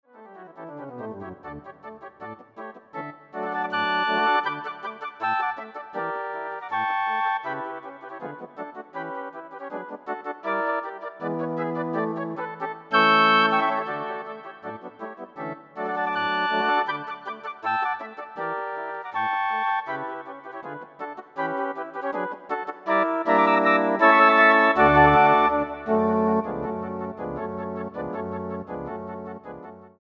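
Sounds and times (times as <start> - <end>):
flute ensemble playing: 3.4 - 29.7.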